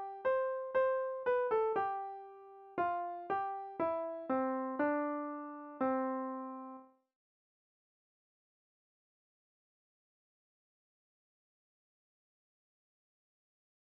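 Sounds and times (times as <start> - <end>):
melodic music: 0.0 - 6.8.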